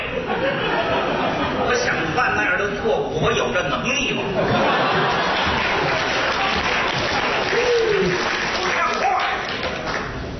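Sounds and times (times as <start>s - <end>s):
laughter: 0.2s - 2.0s, 4.2s - 9.0s
speech: 3.2s - 4.7s
audience applause: 4.8s - 10.2s.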